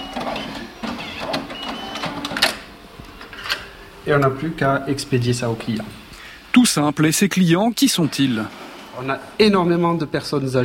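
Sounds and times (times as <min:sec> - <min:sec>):
small card printer printing a QR code onto a prefabricated card: 0:00.0 - 0:06.0, 0:07.8 - 0:10.1
speech: 0:04.1 - 0:06.0, 0:06.6 - 0:10.6.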